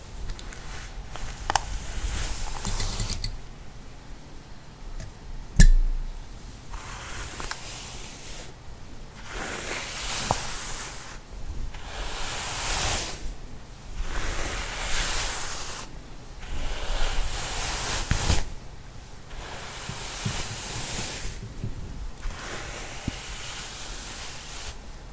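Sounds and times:
hair being brushed: 0:00.0 - 0:03.1, 0:06.7 - 0:08.5, 0:09.2 - 0:11.2, 0:11.8 - 0:13.4, 0:14.0 - 0:18.5, 0:19.3 - 0:21.6, 0:22.2 - 0:24.9
sharp tap: 0:05.6 - 0:06.1.

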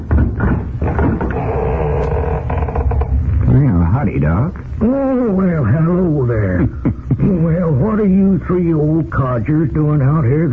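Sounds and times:
knocking thumps on door: 0:00.0 - 0:03.5
door creaking and rattling open: 0:00.0 - 0:03.7
speech: 0:04.0 - 0:10.5.

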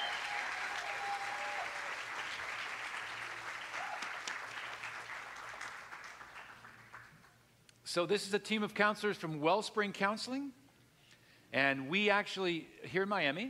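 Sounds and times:
church congregation at a Sunday service applauding a counseling team: 0:00.0 - 0:07.4
speech: 0:07.9 - 0:10.6, 0:11.5 - 0:13.4.

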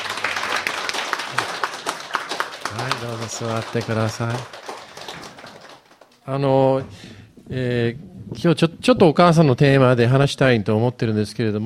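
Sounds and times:
audience applause: 0:00.0 - 0:06.3
speech: 0:02.8 - 0:04.6, 0:06.3 - 0:11.6.

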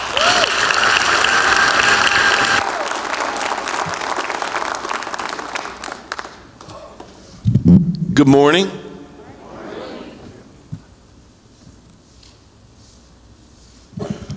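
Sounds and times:
audience applause welcoming a reverend as a guest: 0:00.0 - 0:07.1
speech: 0:08.2 - 0:08.8.

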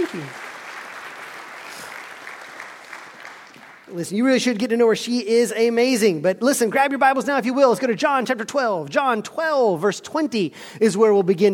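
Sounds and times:
speech: 0:00.0 - 0:00.4, 0:03.9 - 0:11.5
audience applause: 0:00.0 - 0:04.0.

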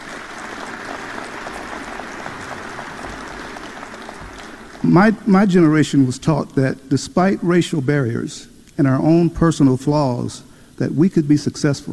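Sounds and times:
audience applause: 0:00.0 - 0:05.4
speech: 0:04.8 - 0:11.9.

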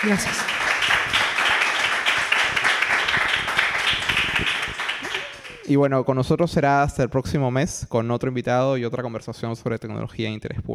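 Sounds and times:
speech: 0:00.0 - 0:00.6, 0:05.7 - 0:10.7
audience applause: 0:00.0 - 0:05.8.

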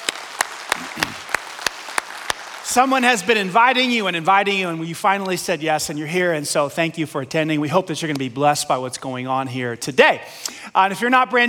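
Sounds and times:
audience clapping at a church service welcoming first-time guests: 0:00.0 - 0:04.6
speech: 0:02.8 - 0:11.4.

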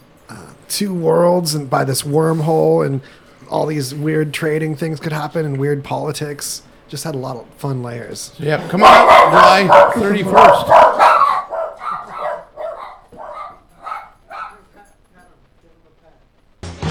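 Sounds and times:
speech: 0:00.3 - 0:10.9
dogs barking: 0:08.6 - 0:14.8.

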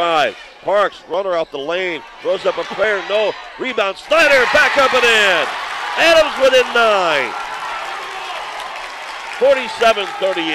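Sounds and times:
speech: 0:00.0 - 0:07.4, 0:09.4 - 0:10.5
basketball fans cheering and applauding: 0:04.3 - 0:10.5.

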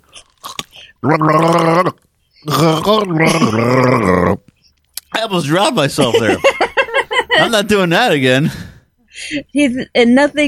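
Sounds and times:
voice imitating gargling as a gargling gargoyle character: 0:00.4 - 0:04.5
speech: 0:01.0 - 0:04.5, 0:05.2 - 0:06.6, 0:07.4 - 0:10.4
laughter: 0:05.7 - 0:08.0.

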